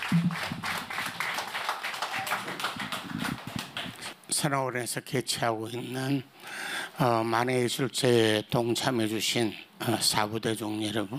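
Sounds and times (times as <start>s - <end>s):
audience applause: 0.0s - 4.1s
speech: 4.4s - 11.1s.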